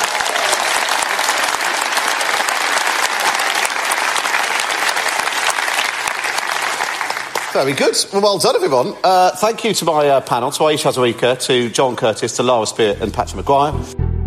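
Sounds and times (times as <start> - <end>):
audience applause: 0.0 - 8.0
speech: 7.6 - 14.0.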